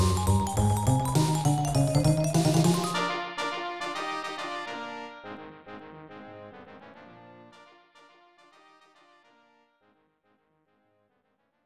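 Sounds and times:
battle music: 0.0s - 4.3s.

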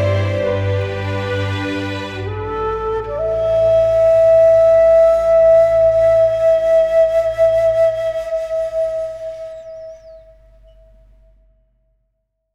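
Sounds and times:
scene music: 0.0s - 9.2s.

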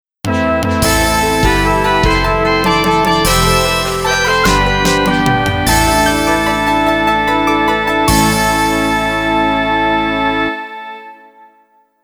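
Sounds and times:
MIDI game music on CM-64 sound source: 0.3s - 10.9s.

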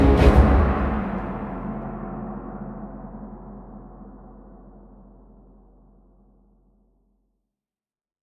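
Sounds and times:
boss fight stage action music: 0.0s - 3.1s.

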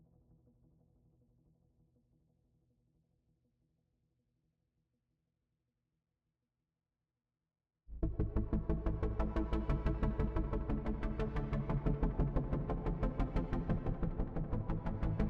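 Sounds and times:
bass: 7.9s - 15.2s.

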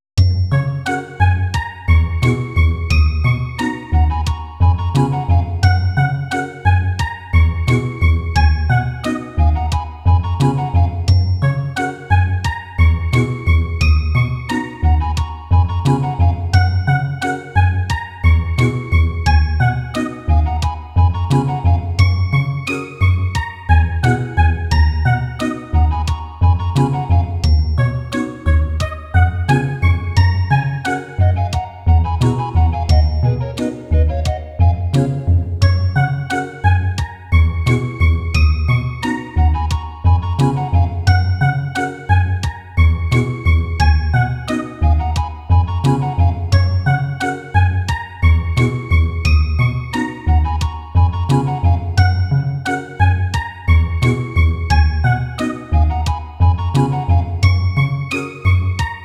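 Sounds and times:
metronome clicking: 0.2s - 59.0s.

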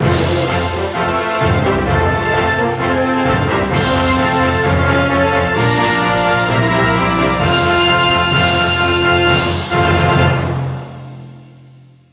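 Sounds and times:
battle cleared victory jingle: 0.0s - 10.7s.

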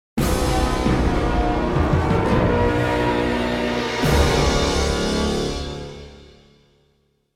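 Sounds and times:
fanfare: 0.2s - 6.2s.

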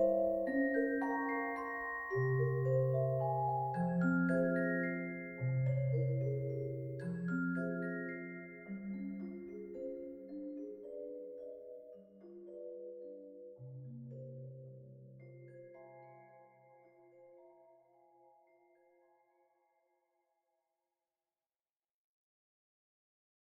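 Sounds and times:
music box: 0.0s - 17.6s.

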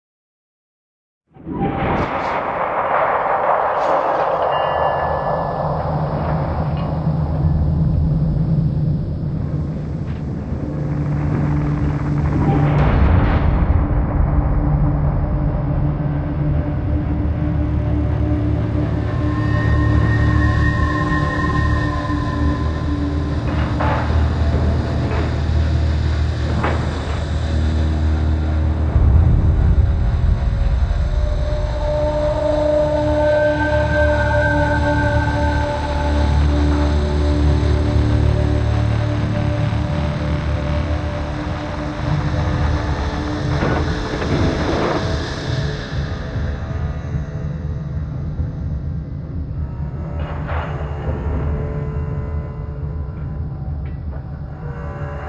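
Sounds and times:
tense music: 1.4s - 55.2s.

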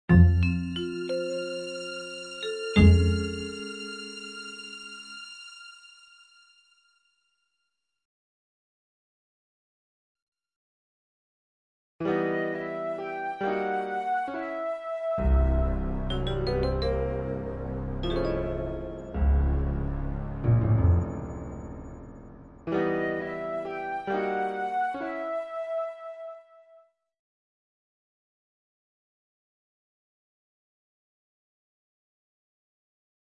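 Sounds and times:
ambient orchestra: 0.2s - 7.0s, 12.1s - 26.2s.

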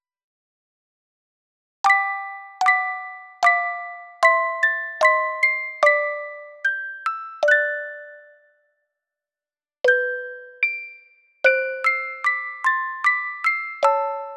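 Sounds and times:
music box chorale: 1.9s - 8.6s, 9.9s - 14.3s.

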